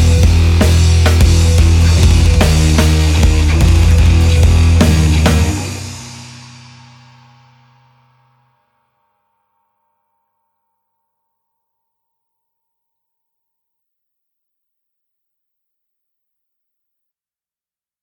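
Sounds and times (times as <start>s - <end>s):
metal drums: 0.0s - 6.9s.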